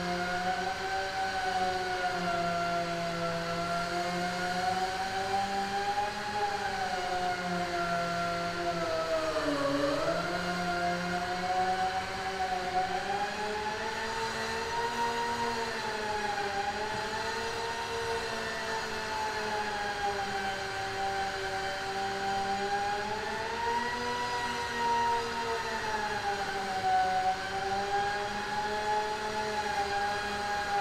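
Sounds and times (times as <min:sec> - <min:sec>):
indoor construction noise: 0:00.0 - 0:30.8.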